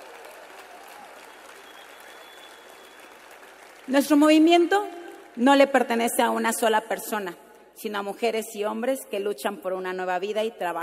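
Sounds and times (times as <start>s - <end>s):
audience applause: 0.0s - 4.4s
speech: 3.9s - 10.8s.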